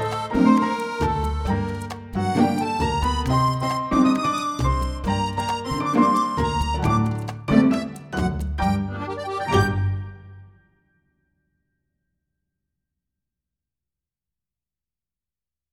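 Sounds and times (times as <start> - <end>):
tango music: 0.0 - 10.6.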